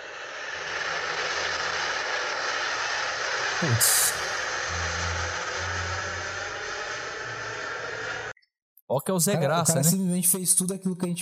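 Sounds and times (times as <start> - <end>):
jet airplane taking off: 0.0 - 8.4
speech: 3.6 - 4.1, 8.9 - 11.1.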